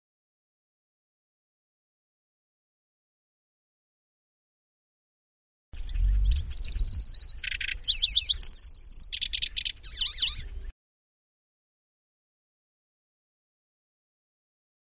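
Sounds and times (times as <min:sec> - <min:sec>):
lanceolated warbler singing: 0:05.8 - 0:10.7.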